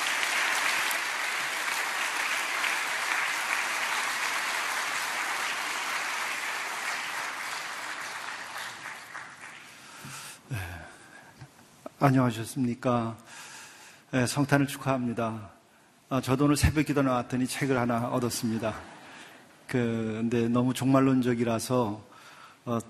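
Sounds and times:
crowd applauding to welcome a pastor: 0.0 - 10.0
speech: 12.0 - 13.4, 14.1 - 18.9, 19.7 - 22.8.

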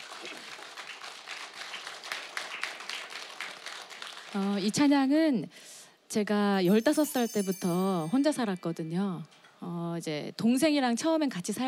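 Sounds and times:
audience applause: 0.0 - 4.5
speech: 4.3 - 11.6.

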